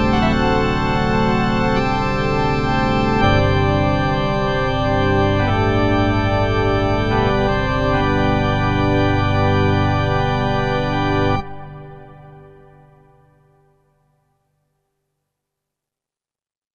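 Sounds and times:
synthesizer pipe organ tones: 0.0s - 13.1s.

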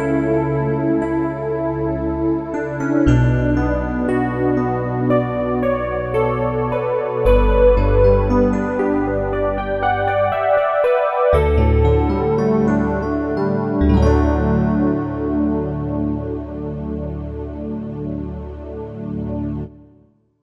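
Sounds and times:
digital piano: 0.0s - 18.6s.

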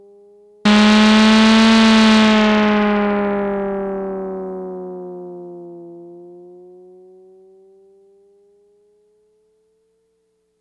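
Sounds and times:
racing car sound on a Yamaha DX100 synthesizer: 0.7s - 4.7s.

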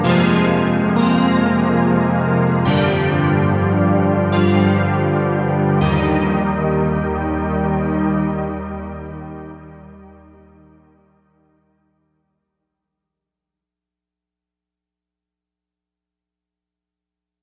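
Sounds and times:
80s synth pad on a Novation UltraNova: 0.0s - 11.0s.

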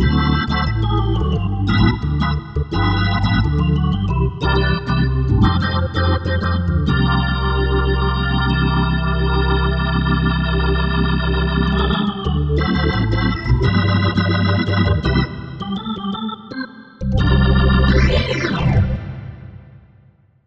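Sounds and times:
jazzy organ: 0.0s - 19.1s.

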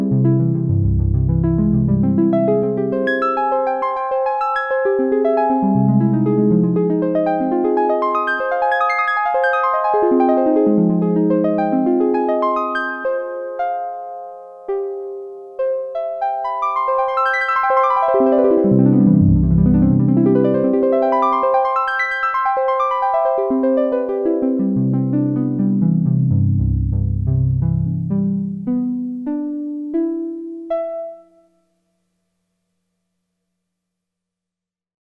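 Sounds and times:
Roland Jupiter-8 synthesizer harp patch: 0.0s - 31.2s.

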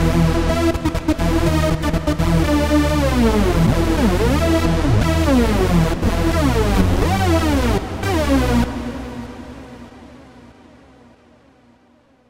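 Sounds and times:
Roland MKS-50 hoover synth: 0.0s - 11.6s.

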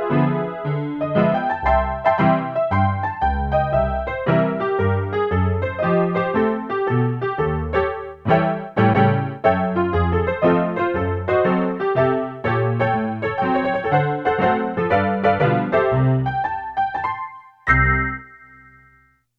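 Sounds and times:
honky-tonk piano tone on a Casio CSM-1: 0.0s - 19.0s.

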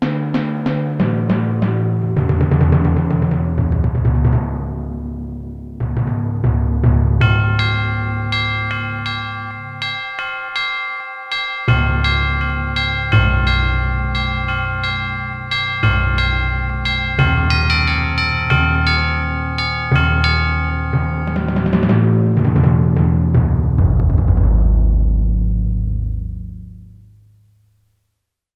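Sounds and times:
timpani: 0.0s - 10.2s, 11.7s - 27.0s
ambient drums: 0.0s - 27.2s
bell: 7.2s - 23.6s.

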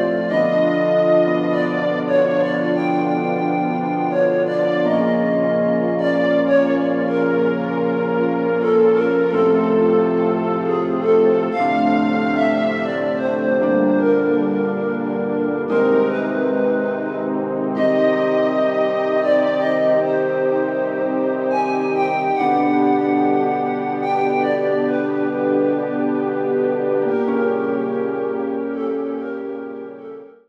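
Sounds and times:
orchestral split instruments: 0.0s - 30.2s.

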